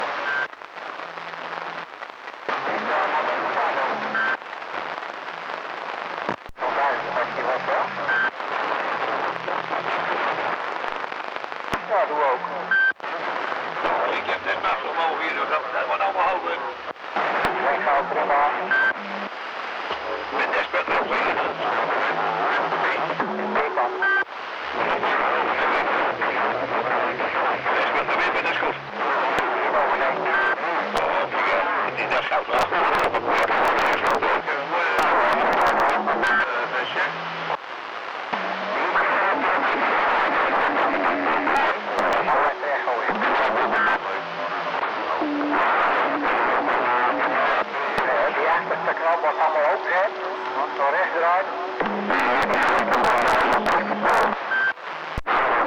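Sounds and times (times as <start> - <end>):
strange radio recording: 0.0 - 55.6.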